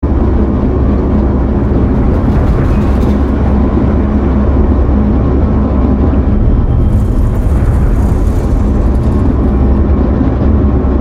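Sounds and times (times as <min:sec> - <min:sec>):
train caboose running: 0:00.0 - 0:10.9.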